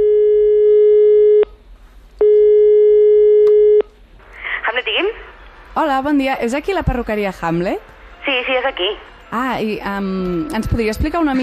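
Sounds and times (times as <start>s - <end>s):
telephone call tone at start of call: 0.0s - 1.5s, 2.2s - 3.9s
speech: 5.8s - 11.4s.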